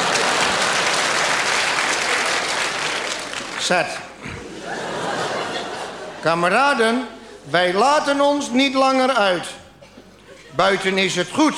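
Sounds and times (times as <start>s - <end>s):
laughter: 0.0s - 1.5s, 4.1s - 7.8s, 9.8s - 11.0s
audience applause: 0.0s - 5.7s
speech: 3.7s - 4.8s, 6.2s - 9.6s, 10.5s - 11.5s.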